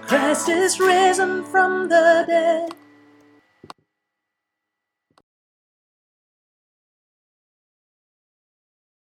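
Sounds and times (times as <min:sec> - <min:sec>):
soprano singing: 0:00.0 - 0:02.9.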